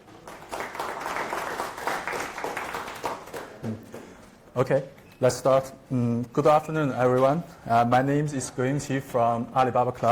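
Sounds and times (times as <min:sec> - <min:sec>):
audience round of applause: 0:00.0 - 0:03.8
speech: 0:03.6 - 0:03.9, 0:04.6 - 0:10.1.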